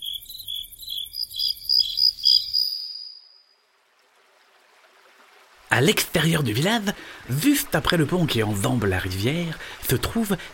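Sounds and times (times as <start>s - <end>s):
cricket chirping: 0.0s - 3.6s
speech: 5.8s - 10.5s.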